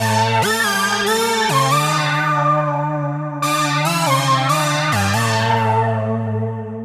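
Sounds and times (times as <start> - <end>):
techno synth: 0.0 - 6.8.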